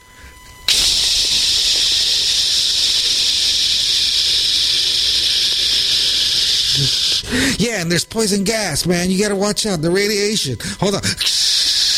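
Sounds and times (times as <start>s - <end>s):
aerosol spray can hissing: 0.7s - 7.6s, 11.2s - 11.9s
speech: 6.8s - 11.4s.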